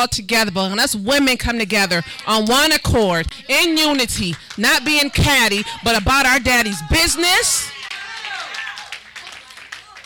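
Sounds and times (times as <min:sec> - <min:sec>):
speech: 0:00.0 - 0:07.8
hand clapping: 0:04.2 - 0:05.7, 0:07.8 - 0:10.0.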